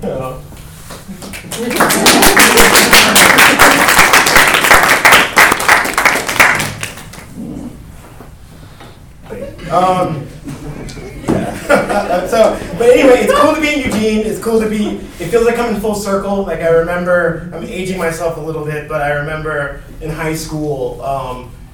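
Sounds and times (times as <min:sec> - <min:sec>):
speech: 0:00.0 - 0:03.4, 0:09.7 - 0:10.3, 0:12.1 - 0:21.6
audience clapping: 0:01.0 - 0:07.4
laughter: 0:09.3 - 0:13.9.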